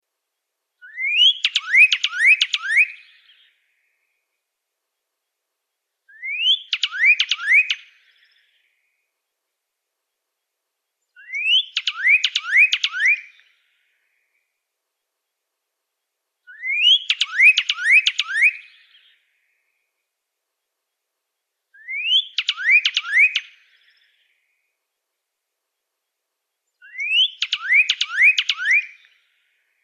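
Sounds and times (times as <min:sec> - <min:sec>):
Pyrrhuloxia singing rising whistles: 0:00.8 - 0:03.4, 0:06.1 - 0:08.6, 0:11.2 - 0:13.5, 0:16.5 - 0:19.1, 0:21.8 - 0:24.3, 0:26.8 - 0:29.2.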